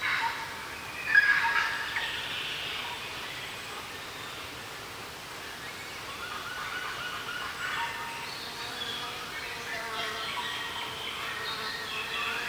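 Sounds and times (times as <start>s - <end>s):
New Zealand forest ambience: 0.0s - 12.4s.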